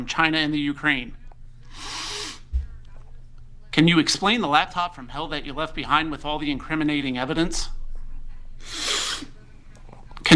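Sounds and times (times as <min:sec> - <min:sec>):
speech: 0:00.0 - 0:02.0, 0:03.7 - 0:07.8, 0:08.6 - 0:08.9
loud nasal sniff: 0:01.7 - 0:02.7, 0:08.6 - 0:09.4.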